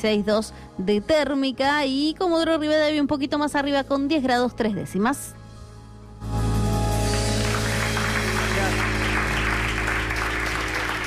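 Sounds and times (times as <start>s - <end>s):
speech: 0.0s - 5.4s
studio applause: 7.0s - 11.0s.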